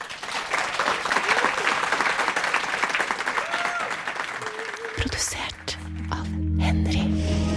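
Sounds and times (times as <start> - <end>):
audience applause: 0.0 - 5.5
faint whistles or cheers: 3.3 - 4.9
speech: 5.0 - 7.4.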